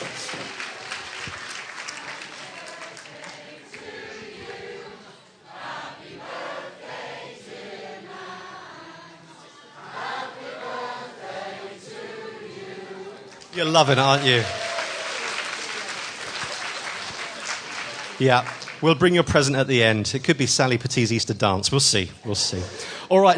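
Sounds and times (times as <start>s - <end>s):
audience applause: 0.0s - 4.2s, 13.3s - 19.5s
speech: 13.6s - 14.6s, 18.2s - 23.3s
whoops and cheers: 13.8s - 15.7s.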